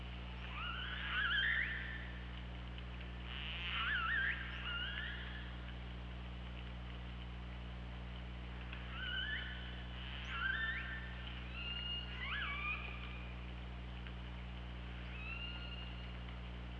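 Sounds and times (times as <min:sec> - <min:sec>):
steady low underwater hum: 0:00.0 - 0:16.7
killer whale whistled calls: 0:00.4 - 0:02.1, 0:03.3 - 0:05.4, 0:08.9 - 0:13.2, 0:15.1 - 0:16.2.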